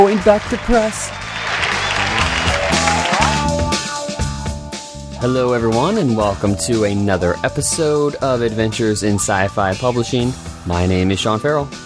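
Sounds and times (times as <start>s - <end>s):
speech: 0.0s - 1.2s, 5.2s - 11.8s
cheering: 0.0s - 3.6s.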